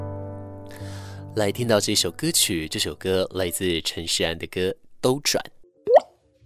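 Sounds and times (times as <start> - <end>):
speech: 1.4 - 5.6
teardrop falling drip effect: 5.9 - 6.2.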